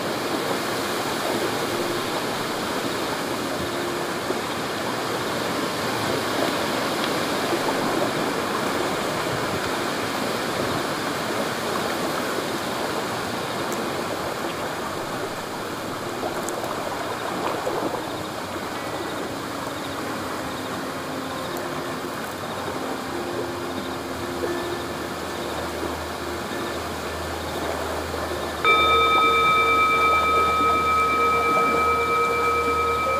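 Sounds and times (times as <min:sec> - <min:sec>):
river water flowing: 0:00.0 - 0:33.1
faint held tones: 0:24.4 - 0:33.1
low hum: 0:25.6 - 0:33.1
sustained flute note: 0:28.2 - 0:33.1.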